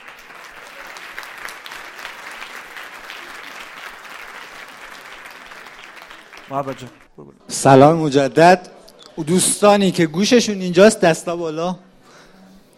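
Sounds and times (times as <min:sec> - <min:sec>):
group applauding themselves: 0:00.0 - 0:07.2
speech: 0:06.5 - 0:11.9.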